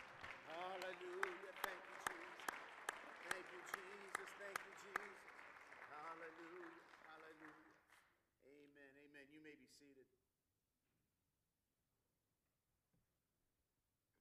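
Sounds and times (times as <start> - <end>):
audience clapping hands: 0.0 - 8.2.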